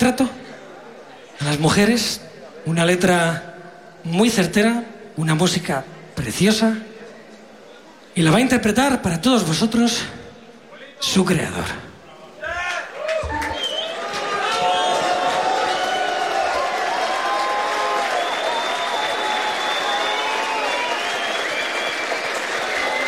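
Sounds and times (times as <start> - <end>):
speech: 0.0 - 0.4, 1.4 - 6.9, 8.2 - 10.2, 11.0 - 11.9
cheers and whoops: 12.6 - 23.0
crowd applause: 12.6 - 23.0.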